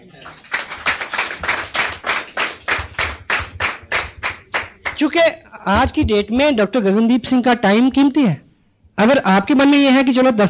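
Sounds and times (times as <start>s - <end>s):
audience clapping: 0.0s - 5.2s
speech: 5.0s - 8.4s, 9.0s - 10.4s.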